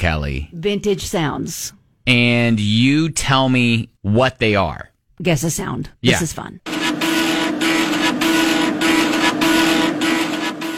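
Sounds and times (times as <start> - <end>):
speech: 0.0 - 6.8
dot matrix printer printing: 6.7 - 10.7.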